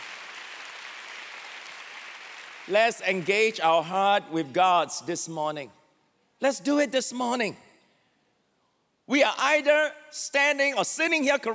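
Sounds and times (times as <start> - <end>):
audience clapping: 0.0 - 3.6
speech: 2.6 - 5.8, 6.4 - 7.6, 9.1 - 11.5.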